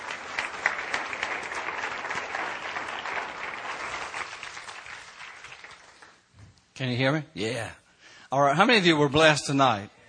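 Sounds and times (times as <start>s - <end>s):
crowd clapping: 0.0s - 6.3s
speech: 6.8s - 10.0s.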